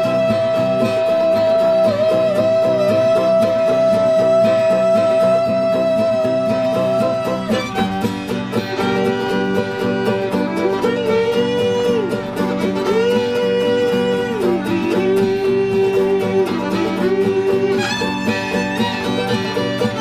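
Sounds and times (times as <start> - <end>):
instrumental music: 0.0 - 20.0.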